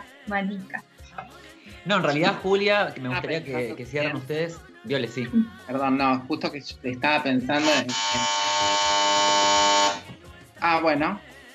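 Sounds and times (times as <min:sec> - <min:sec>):
speech: 0:00.3 - 0:08.9, 0:10.7 - 0:11.3
telephone ringing with a loud electronic buzz: 0:07.6 - 0:10.0.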